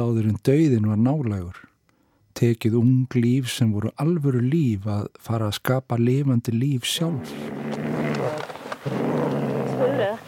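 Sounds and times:
speech: 0.0s - 1.7s, 2.4s - 7.6s, 8.8s - 9.4s
man growling: 7.1s - 10.2s.

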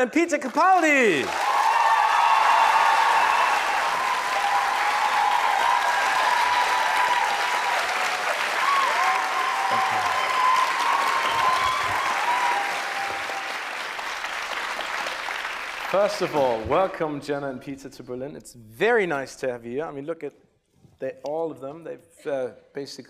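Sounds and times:
speech: 0.0s - 1.5s, 15.9s - 20.4s, 21.0s - 23.0s
audience applause: 0.0s - 17.0s.

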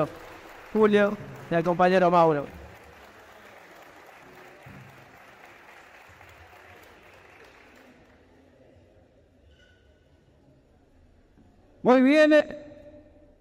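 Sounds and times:
speech: 0.0s - 2.6s, 11.8s - 12.6s
audience applause: 0.0s - 8.4s.

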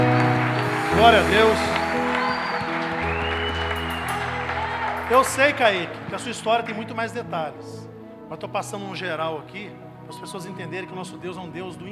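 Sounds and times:
audience applauding: 0.0s - 6.7s
speech: 1.0s - 1.8s, 5.1s - 11.9s.

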